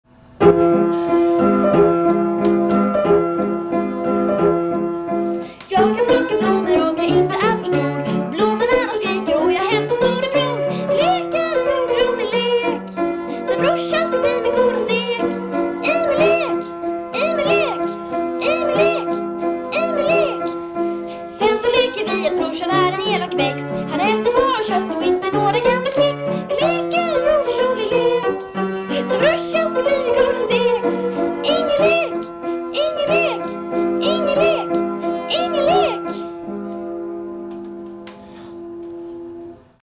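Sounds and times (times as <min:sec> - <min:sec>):
piano: 0:00.0 - 0:39.8.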